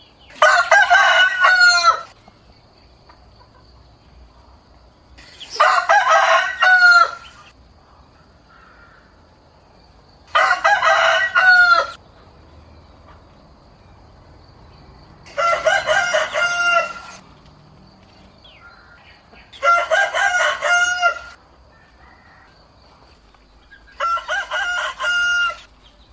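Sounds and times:
rooster crowing: 0.3 - 2.2, 5.5 - 7.5, 10.3 - 12.0, 15.2 - 17.2, 18.4 - 22.8, 23.8 - 25.7.

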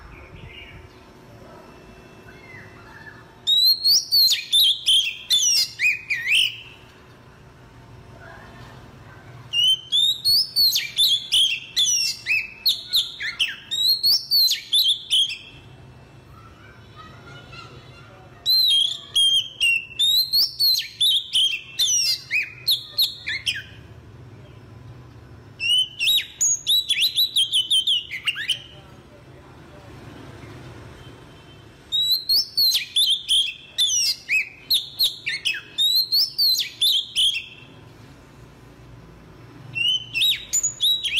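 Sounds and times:
Oriental magpie-robin whistled song: 2.3 - 6.8, 9.5 - 15.6, 18.4 - 23.8, 25.6 - 28.7, 31.9 - 37.8, 39.7 - 41.1.

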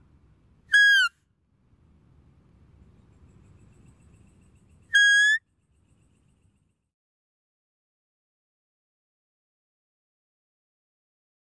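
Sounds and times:
deer whistled calls: 0.7 - 1.1, 4.9 - 5.4.

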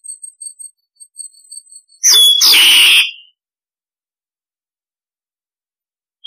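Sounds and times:
starling harsh rasping calls: 0.0 - 3.2.

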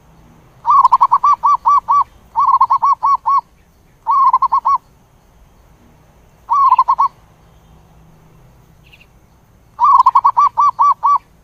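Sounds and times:
zebra dove cooing: 0.6 - 3.5, 4.1 - 4.8, 6.5 - 7.2, 9.8 - 11.4.

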